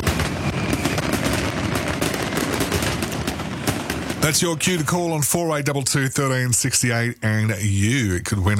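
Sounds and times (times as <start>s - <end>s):
fireworks exploding at a pyro-musical show: 0.0s - 6.9s
speech: 4.3s - 8.5s.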